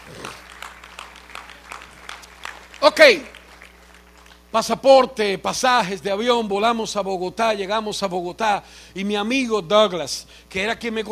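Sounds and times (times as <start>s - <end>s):
audience applause: 0.0s - 4.5s
speech: 2.8s - 3.4s, 4.5s - 11.0s.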